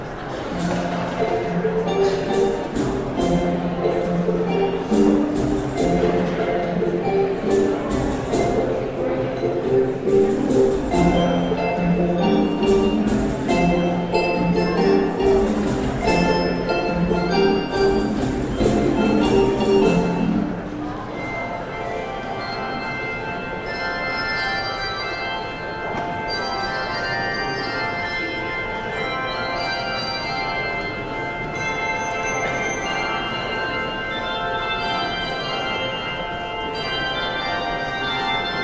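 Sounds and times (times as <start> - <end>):
handbells: 0.6 - 38.6.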